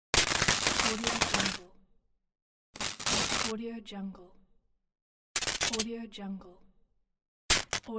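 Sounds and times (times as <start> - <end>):
electric welding: 0.2 - 1.6, 2.8 - 3.5, 5.4 - 5.8, 7.5 - 7.8.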